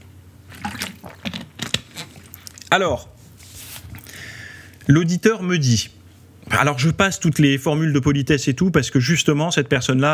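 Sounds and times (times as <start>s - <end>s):
person sipping and gulping a drink: 0.4s - 2.8s
speech: 2.7s - 3.2s, 4.9s - 10.1s.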